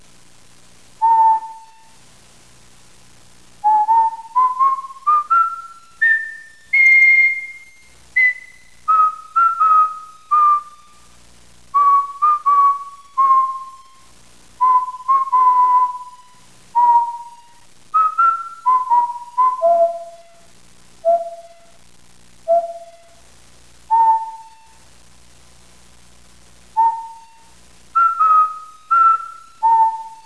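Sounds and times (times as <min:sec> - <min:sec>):
person whistling: 0:01.0 - 0:02.0, 0:03.6 - 0:11.0, 0:11.8 - 0:20.4, 0:21.0 - 0:21.7, 0:22.5 - 0:23.1, 0:23.9 - 0:24.8, 0:26.8 - 0:30.2.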